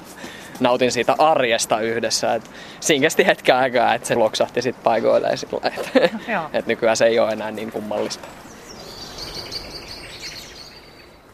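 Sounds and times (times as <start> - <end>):
speech: 0.6 - 8.5
laughter: 5.4 - 6.5
birds singing loudly outdoors: 8.2 - 11.3.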